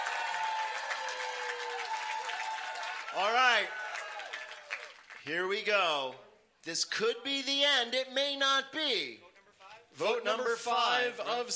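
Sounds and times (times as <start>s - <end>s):
audience applause: 0.0s - 5.2s
speech: 3.2s - 3.8s, 5.2s - 9.3s, 10.0s - 11.5s.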